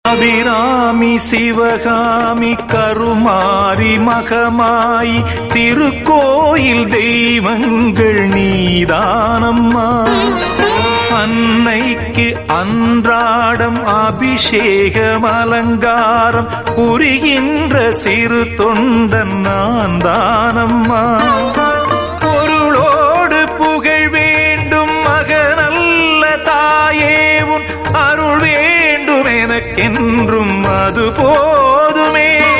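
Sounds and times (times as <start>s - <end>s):
Tamil song: 0.0s - 32.5s.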